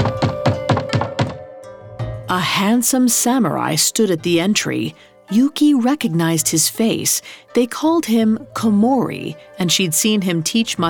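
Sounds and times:
knocking on a wooden door: 0.0s - 1.5s
speech: 2.3s - 10.8s.

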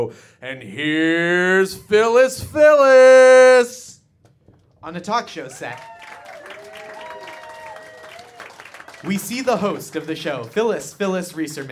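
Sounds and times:
speech: 0.0s - 3.8s, 4.8s - 6.2s, 9.0s - 11.7s
polite applause from a talk show studio audience: 5.6s - 11.7s.

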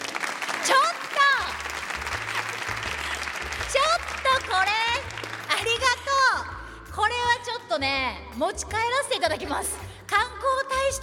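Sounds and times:
audience of students clapping: 0.0s - 6.2s
speech: 7.8s - 11.0s.

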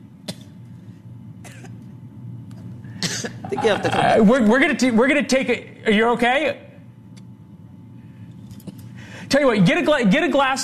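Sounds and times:
woman coughing: 1.4s - 1.8s, 3.0s - 4.2s
speech: 3.2s - 6.6s, 9.4s - 10.6s.

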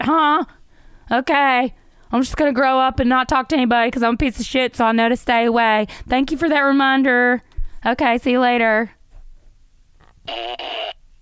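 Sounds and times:
speech: 0.0s - 9.0s, 10.3s - 11.0s
fart machine fart sound: 10.3s - 11.0s.

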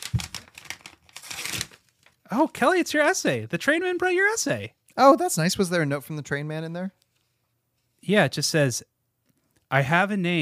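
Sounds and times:
paper envelope tearing: 0.0s - 1.9s
paper envelope being opened, crinkling and rustling: 0.0s - 2.2s
speech: 2.3s - 7.0s, 8.0s - 8.9s, 9.7s - 10.4s.

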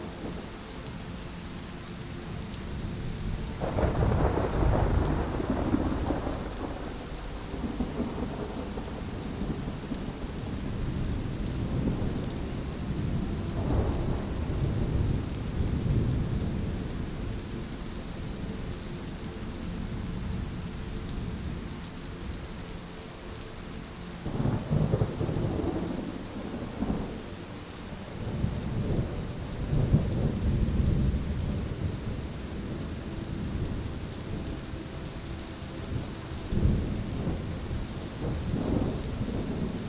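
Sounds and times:
steady rain hiss in a storm: 0.0s - 39.8s
deep rolling thunder: 3.5s - 17.2s, 28.2s - 32.8s, 35.9s - 39.8s.

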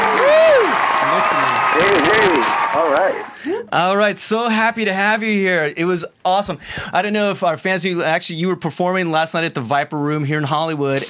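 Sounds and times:
audience applause: 0.0s - 3.4s
speech: 2.8s - 11.0s.

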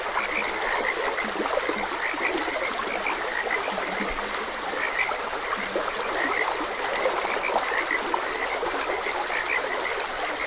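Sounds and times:
frogs chirping and croaking: 0.0s - 10.4s
trickling water: 0.0s - 10.4s.

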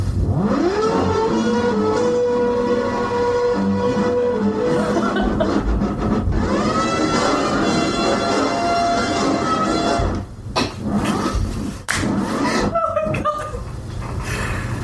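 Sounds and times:
cat scratching records on DJ turntables: 0.1s - 13.3s
laughter: 4.7s - 5.8s, 12.4s - 14.8s.

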